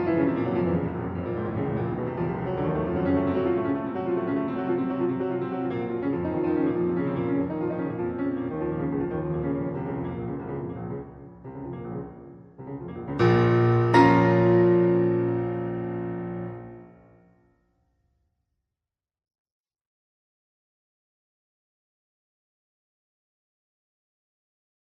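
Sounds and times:
piano sonata in B flat minor: 0.0s - 17.3s.

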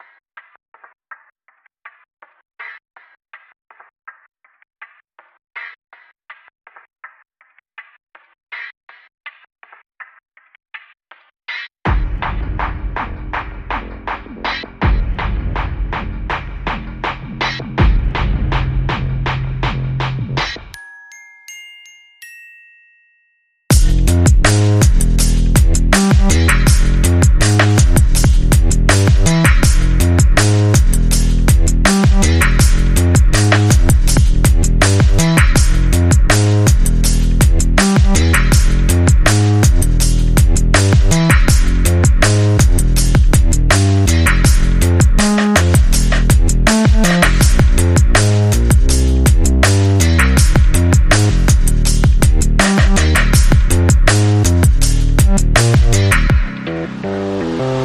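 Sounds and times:
groove with bass without effects: 11.9s - 20.7s, 23.7s - 57.8s.

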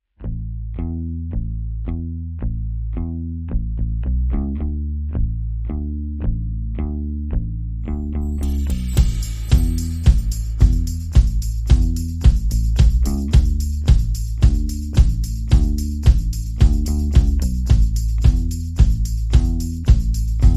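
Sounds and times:
bass: 0.0s - 20.5s
drums: 8.4s - 20.5s.

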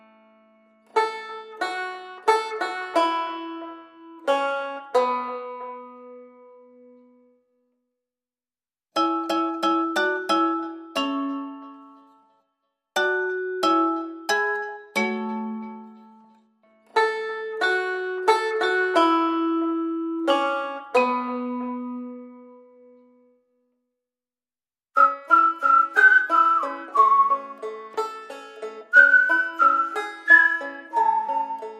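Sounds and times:
banjo: 0.0s - 7.4s, 9.0s - 12.4s, 13.0s - 23.2s, 25.0s - 31.7s
whistle: 25.0s - 28.1s, 28.9s - 31.7s.

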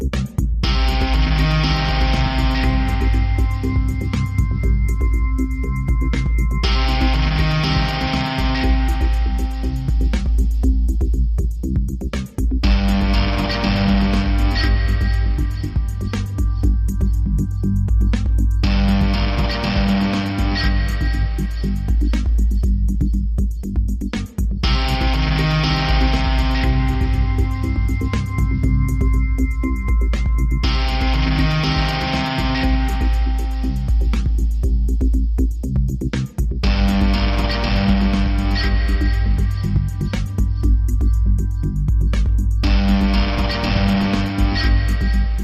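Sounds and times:
highway guitar: 0.2s - 45.4s.

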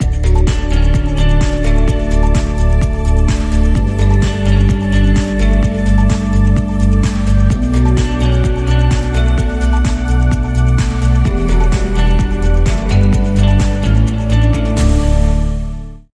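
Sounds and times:
underscore music: 0.0s - 16.1s.

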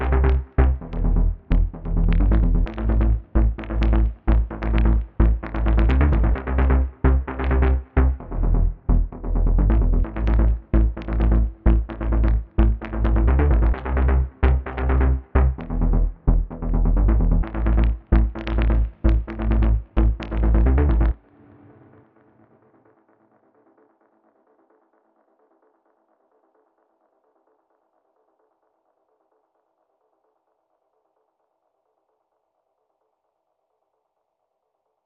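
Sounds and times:
bass: 0.0s - 21.2s.

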